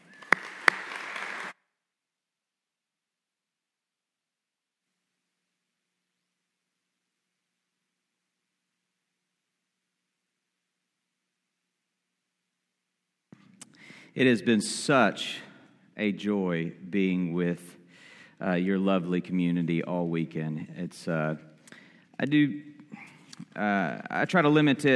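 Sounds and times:
audience applause welcoming a speaker at an event: 0:00.0 - 0:01.6
speech: 0:14.1 - 0:17.8, 0:18.4 - 0:21.5, 0:22.2 - 0:23.0, 0:23.6 - 0:24.9.

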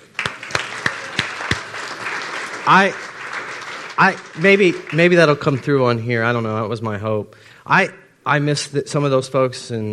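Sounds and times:
audience clapping: 0:00.0 - 0:06.4
speech: 0:02.6 - 0:03.0, 0:04.0 - 0:09.9.

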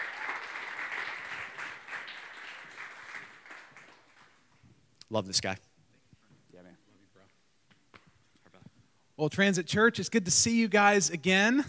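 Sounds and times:
church audience clapping to welcome a guest speaker: 0:00.0 - 0:04.6
speech: 0:05.1 - 0:05.7, 0:09.2 - 0:11.6.

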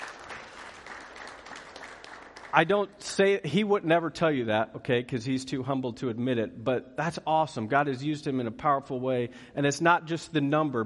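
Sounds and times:
audience applause: 0:00.0 - 0:02.8
speech: 0:02.5 - 0:10.8.

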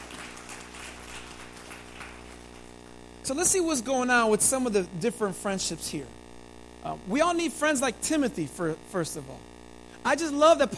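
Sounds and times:
audience clapping: 0:00.0 - 0:02.9
speech: 0:03.3 - 0:06.2, 0:06.8 - 0:10.7.

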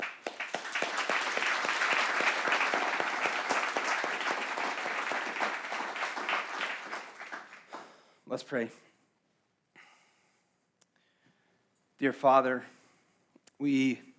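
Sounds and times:
audience applause: 0:00.0 - 0:08.0
speech: 0:08.4 - 0:08.9, 0:12.0 - 0:12.8, 0:13.6 - 0:14.1.

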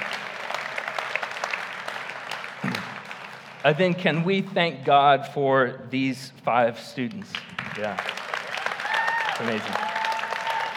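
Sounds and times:
audience applause: 0:00.0 - 0:03.8, 0:07.3 - 0:10.7
speech: 0:03.6 - 0:08.2, 0:09.4 - 0:09.9.

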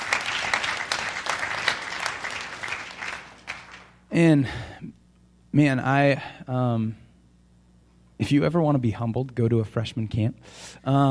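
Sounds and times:
audience clapping: 0:00.0 - 0:04.0
speech: 0:04.2 - 0:07.0, 0:08.2 - 0:11.0.

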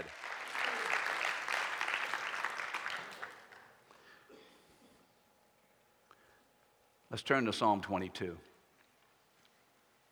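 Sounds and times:
audience clapping: 0:00.0 - 0:04.2
speech: 0:07.2 - 0:08.5.

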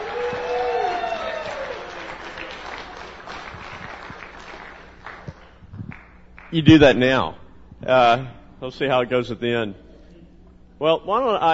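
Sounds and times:
audience applause welcoming a speaker at an apologetics session: 0:00.0 - 0:06.5
speech: 0:06.5 - 0:09.8, 0:10.8 - 0:11.5.

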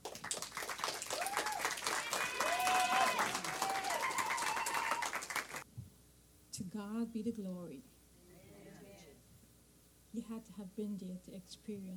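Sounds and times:
audience applause at a women's church testimony gathering: 0:00.0 - 0:05.6
cheering: 0:01.0 - 0:05.6
speech: 0:06.8 - 0:07.9, 0:10.2 - 0:11.9.

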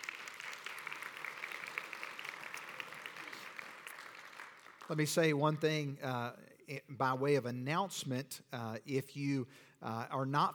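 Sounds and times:
audience applauding: 0:00.0 - 0:05.1
speech: 0:04.9 - 0:10.5.

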